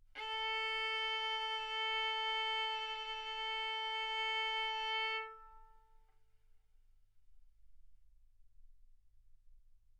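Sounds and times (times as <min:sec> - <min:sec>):
violin bowed mezzo-forte on the A string, A4 and B4: 0:00.2 - 0:05.8.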